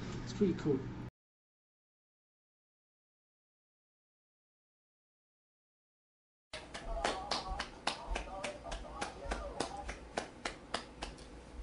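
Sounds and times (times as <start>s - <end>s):
speech: 0.4s - 1.0s
hand clap: 6.6s - 11.3s.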